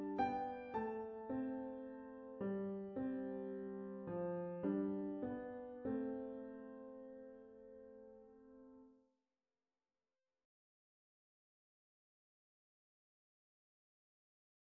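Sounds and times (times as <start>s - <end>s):
pianoforte: 0.0s - 9.0s.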